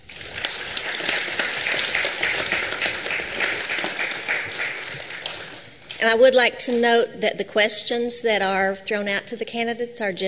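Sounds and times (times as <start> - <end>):
audience round of applause: 0.0 - 5.8
speech: 6.0 - 10.2.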